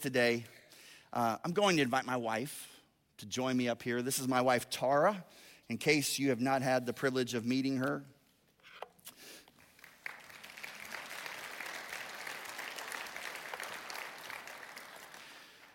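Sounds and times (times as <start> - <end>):
speech: 0.0 - 8.2
audience applause: 9.6 - 15.7.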